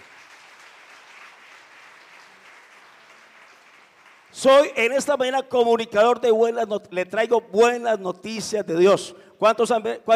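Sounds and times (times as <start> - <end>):
audience applause: 0.0 - 4.4
speech: 4.3 - 10.1.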